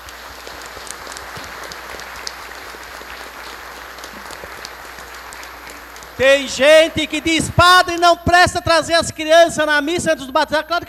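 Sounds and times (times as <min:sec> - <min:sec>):
audience applauding: 0:00.0 - 0:08.2
speech: 0:06.2 - 0:10.8.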